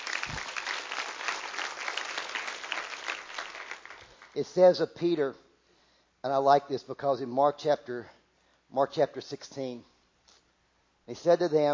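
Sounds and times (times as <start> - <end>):
audience clapping: 0.0 - 4.5
speech: 4.4 - 5.4, 6.2 - 9.9, 11.1 - 11.7.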